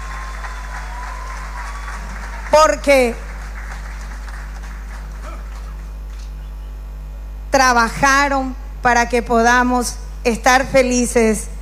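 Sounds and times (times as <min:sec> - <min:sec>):
audience applause for the choir: 0:00.0 - 0:06.2
speech: 0:02.6 - 0:03.2, 0:07.6 - 0:11.5.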